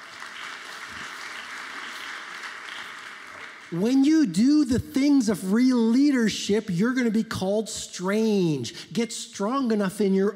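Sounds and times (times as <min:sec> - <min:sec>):
audience applause: 0:00.0 - 0:03.8
speech: 0:03.7 - 0:10.3.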